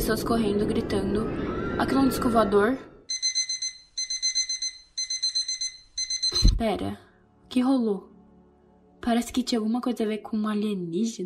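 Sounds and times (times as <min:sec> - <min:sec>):
speech: 0:00.0 - 0:02.9, 0:06.6 - 0:08.1, 0:09.0 - 0:11.2
alarm clock ringing: 0:03.1 - 0:06.5.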